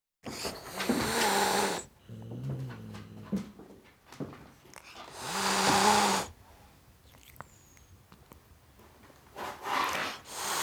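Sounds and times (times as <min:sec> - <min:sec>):
domestic cat hissing: 0:00.3 - 0:01.9, 0:04.7 - 0:08.3, 0:09.4 - 0:10.6.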